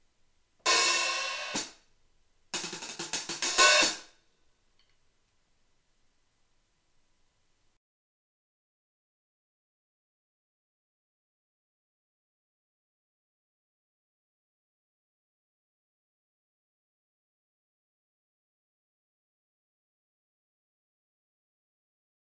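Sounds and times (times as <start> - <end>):
antique hi-hat cymbal set: 0.7 - 1.8, 2.6 - 4.2.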